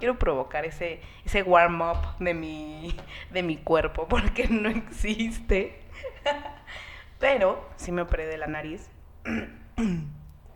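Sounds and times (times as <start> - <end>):
speech: 0.0 - 10.2
person clearing mucus from throat after nose surgery: 9.2 - 10.2.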